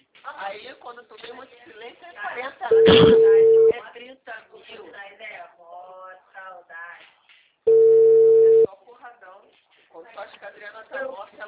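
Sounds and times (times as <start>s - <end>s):
speech: 0.4s - 7.1s, 9.0s - 11.4s
phone busy tone beep after a dropped call: 2.7s - 3.8s, 7.7s - 8.7s.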